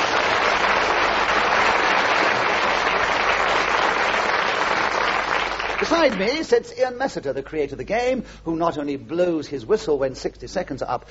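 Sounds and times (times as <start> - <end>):
studio audience applause: 0.0 - 6.2
speech: 5.9 - 11.0.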